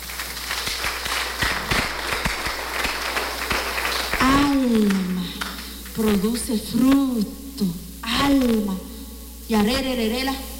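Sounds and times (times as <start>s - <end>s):
applause: 0.0s - 5.7s
speech: 6.0s - 8.9s, 9.5s - 10.5s.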